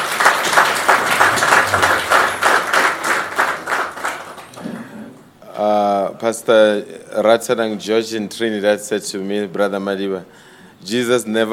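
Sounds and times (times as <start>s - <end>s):
audience applause: 0.0s - 5.2s
speech: 6.3s - 11.5s.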